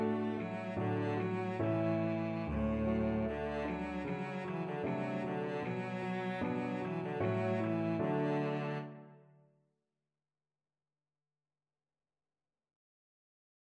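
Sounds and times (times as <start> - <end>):
cello playing a folk song: 0.0 - 9.2.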